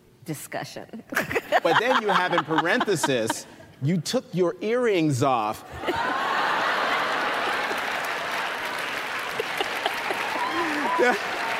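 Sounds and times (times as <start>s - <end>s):
speech: 0.3s - 6.2s, 11.0s - 11.3s
laughter: 1.2s - 3.6s, 5.7s - 11.5s
audience applause: 5.9s - 11.5s.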